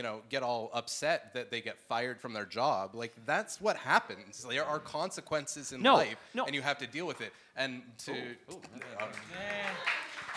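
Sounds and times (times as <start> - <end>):
speech: 0.0 - 10.2
live audience applause: 8.8 - 10.3.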